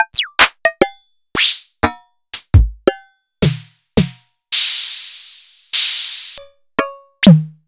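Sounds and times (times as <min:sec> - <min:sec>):
Sony DPS-F7 drum kit: 0:00.0 - 0:00.6, 0:01.4 - 0:01.8, 0:02.4 - 0:06.6, 0:07.2 - 0:07.6.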